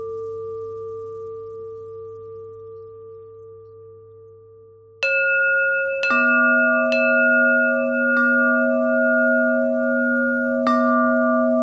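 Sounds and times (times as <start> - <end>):
pentatonic bell melody: 2.6 - 11.6.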